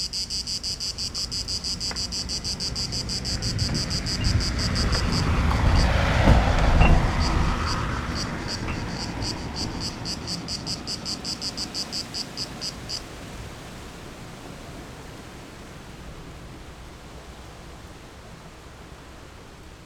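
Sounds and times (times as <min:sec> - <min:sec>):
cicadas chirping in Greece: 0:00.0 - 0:13.4.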